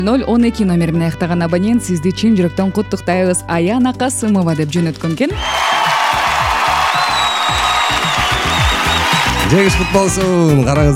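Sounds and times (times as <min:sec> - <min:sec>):
speech: 0:00.0 - 0:05.9, 0:09.5 - 0:10.9
audience clapping and cheering as a prize winner is announced: 0:05.3 - 0:10.6.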